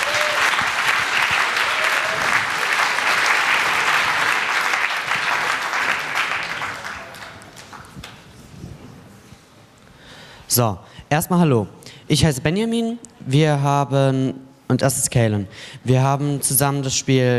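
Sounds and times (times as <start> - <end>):
audience applause: 0.0 - 8.2
speech: 10.6 - 17.3.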